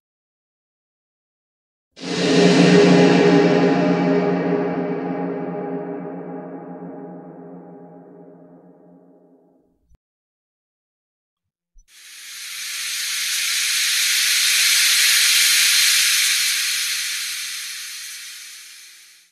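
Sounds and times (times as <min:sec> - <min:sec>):
creepy horror sounds: 0:02.0 - 0:09.1, 0:12.0 - 0:19.2.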